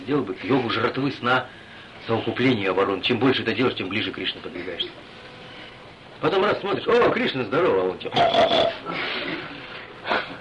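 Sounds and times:
speech: 0.0s - 5.2s, 6.2s - 9.5s
person imitating pig grunting with nasal snorting: 8.1s - 9.0s.

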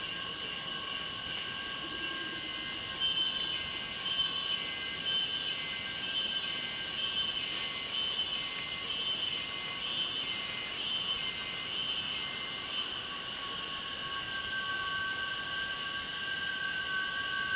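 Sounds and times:
cicadas buzzing chorus at dusk by the Ventuari river: 0.0s - 17.5s.

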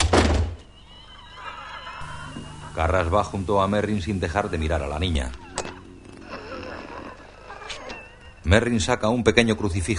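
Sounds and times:
bedroom door shut in The Exorcist: 0.0s - 0.7s
laughter: 0.9s - 8.8s
speech: 2.8s - 5.4s, 8.5s - 9.9s.

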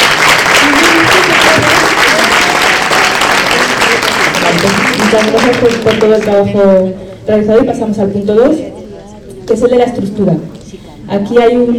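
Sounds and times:
applause at a public assembly meeting after a vote: 0.0s - 6.5s
speech: 5.1s - 8.7s, 9.5s - 11.7s.

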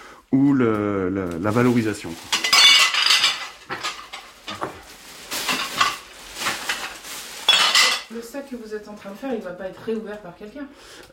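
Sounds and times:
speech: 0.3s - 2.4s, 8.5s - 11.1s
everyday glassware clinking while being sorted: 2.3s - 4.8s, 7.4s - 8.1s.

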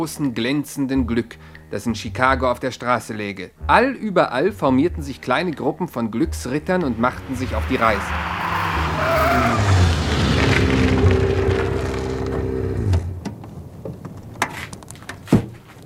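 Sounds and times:
speech: 0.0s - 8.4s
car tires screeching as it skids to a halt: 6.7s - 13.1s.

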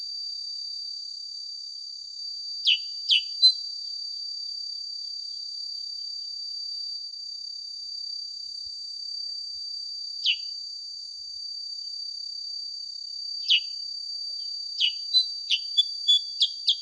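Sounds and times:
sooty-headed bulbul song of sharp downslurred chirps: 2.6s - 3.6s, 10.2s - 10.5s, 13.4s - 13.7s, 14.8s - 16.8s.

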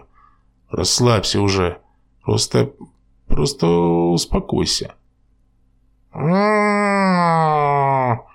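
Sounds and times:
speech: 0.7s - 5.0s, 6.1s - 8.3s
baby grunting and moaning: 6.2s - 8.3s.

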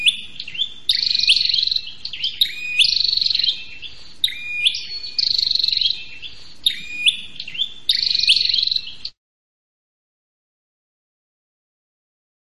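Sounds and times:
prinia rattling trills and chips: 0.0s - 9.2s.

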